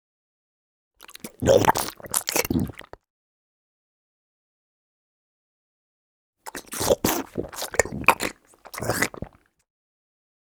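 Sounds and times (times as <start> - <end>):
male zombie voice eating and swallowing: 1.0 - 3.0, 6.5 - 9.5.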